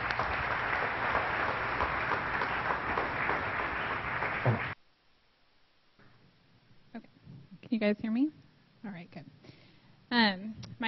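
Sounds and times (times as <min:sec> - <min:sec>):
large crowd applause welcoming a speaker: 0:00.0 - 0:04.8
speech: 0:07.7 - 0:09.4, 0:10.1 - 0:10.8.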